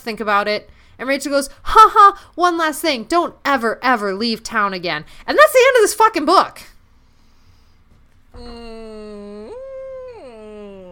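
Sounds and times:
speech: 0:00.0 - 0:06.7, 0:08.4 - 0:08.9
voice imitating a dying whale with a mournful moan: 0:08.4 - 0:10.9.

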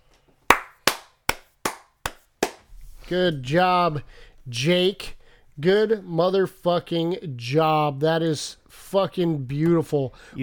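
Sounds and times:
slow clap of sharp hand claps: 0:00.5 - 0:02.7
speech: 0:03.1 - 0:10.4.

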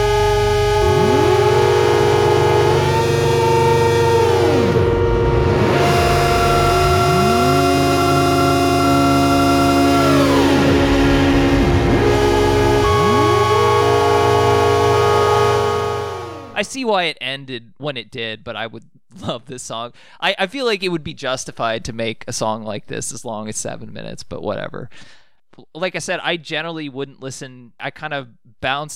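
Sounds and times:
drone: 0:00.0 - 0:16.6
shrill noisy synths: 0:00.0 - 0:16.7
speech: 0:16.9 - 0:28.9.

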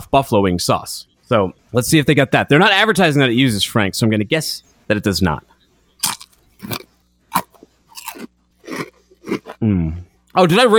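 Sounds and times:
speech: 0:00.1 - 0:05.5, 0:10.4 - 0:10.7
biting a thick-cut ridged buffalo-flavored potato chip: 0:06.0 - 0:09.6.

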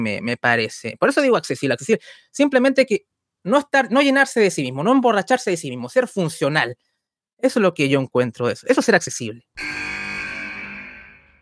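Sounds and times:
speech: 0:00.0 - 0:10.0
time-up buzzer horn: 0:09.6 - 0:11.4.

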